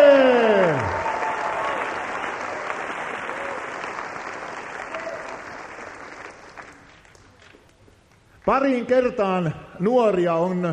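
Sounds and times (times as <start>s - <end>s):
audience applause: 0.0s - 7.7s
speech: 8.5s - 10.7s.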